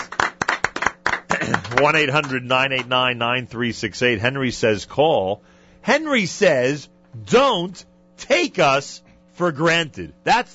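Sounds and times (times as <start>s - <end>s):
round of applause: 0.0s - 2.9s
speech: 1.8s - 10.5s.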